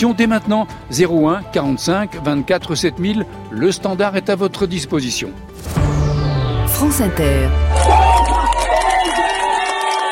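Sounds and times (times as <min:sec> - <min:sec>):
speech: 0:00.0 - 0:05.8, 0:06.8 - 0:08.0
migrants cheering and applauding aboard the Open Arms ship: 0:07.5 - 0:10.1.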